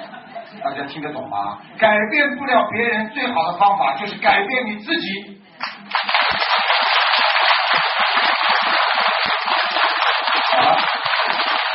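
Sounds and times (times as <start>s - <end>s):
speech: 0.6s - 5.7s
audience applause: 5.9s - 11.7s.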